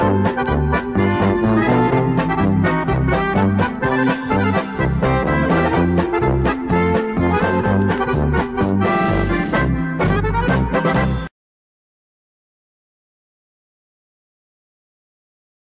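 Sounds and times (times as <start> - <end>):
instrumental polka with bells: 0.0 - 11.3.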